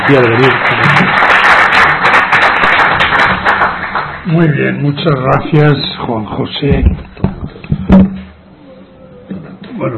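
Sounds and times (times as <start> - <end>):
audience applause: 0.0 - 4.5
speech: 0.1 - 1.2, 4.2 - 7.1.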